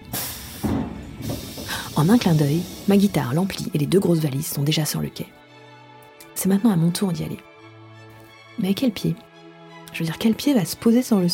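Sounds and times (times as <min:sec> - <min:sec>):
train door opening with pneumatic hiss: 0:00.0 - 0:03.0
speech: 0:02.0 - 0:05.4, 0:06.4 - 0:07.5, 0:08.6 - 0:09.3, 0:10.0 - 0:11.3.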